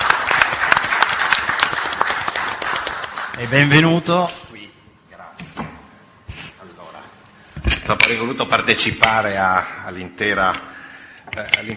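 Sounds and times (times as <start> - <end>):
audience applause: 0.0 - 3.7
speech: 3.4 - 4.5, 7.9 - 10.7, 11.4 - 11.7.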